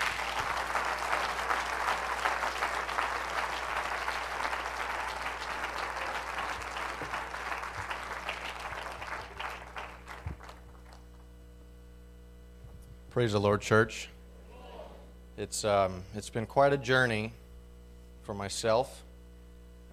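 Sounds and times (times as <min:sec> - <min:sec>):
large crowd applauding: 0:00.0 - 0:11.2
speech: 0:13.2 - 0:14.2, 0:15.4 - 0:17.4, 0:18.3 - 0:19.0.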